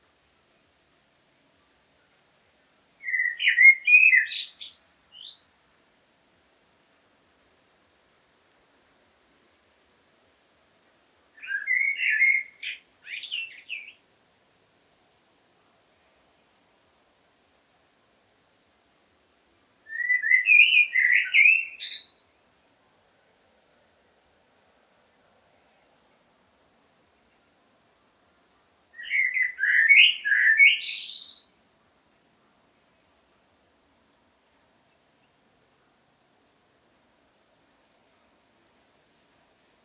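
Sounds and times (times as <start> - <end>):
blackbird singing: 3.0 - 5.4, 11.4 - 14.0, 19.9 - 22.2, 29.0 - 31.5.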